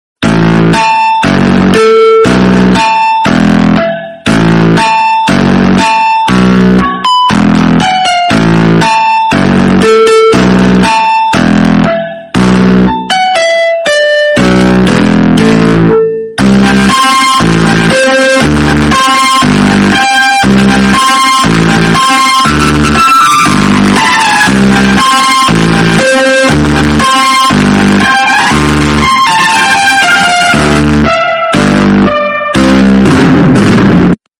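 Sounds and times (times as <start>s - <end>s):
funk music: 0.2s - 34.2s.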